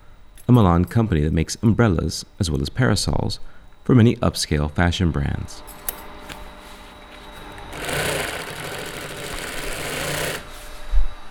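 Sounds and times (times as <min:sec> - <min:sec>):
speech: 0:00.5 - 0:05.8
sewing machine stitching umbrella canopy covers in a Milan umbrella workshop: 0:07.5 - 0:10.6.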